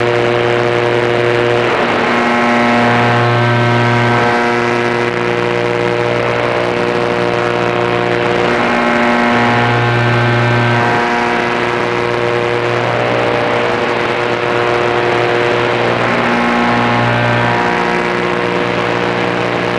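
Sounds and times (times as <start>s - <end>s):
10MHz radio tuning tone: 0.0s - 19.7s.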